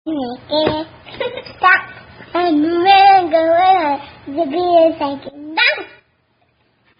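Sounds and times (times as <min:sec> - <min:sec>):
two-year-old child singing: 0:00.1 - 0:01.0, 0:01.6 - 0:06.0.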